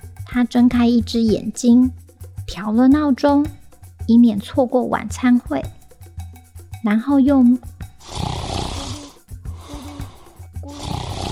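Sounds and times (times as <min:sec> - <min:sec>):
speech: 0:00.3 - 0:05.8, 0:06.8 - 0:07.8
snoring: 0:08.0 - 0:11.2.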